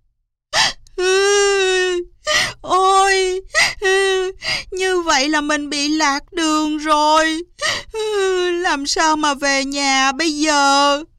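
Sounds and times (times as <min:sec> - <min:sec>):
girl bursting into sobs: 0:00.6 - 0:05.5, 0:06.5 - 0:09.2, 0:10.5 - 0:11.1
speech: 0:05.2 - 0:11.1.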